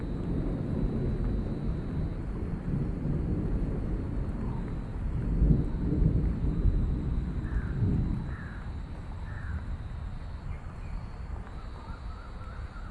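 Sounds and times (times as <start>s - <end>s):
rain: 0.0s - 12.9s
thunder rumbling: 0.0s - 12.9s
faint crow-like bird calls: 7.4s - 9.7s, 11.5s - 12.9s.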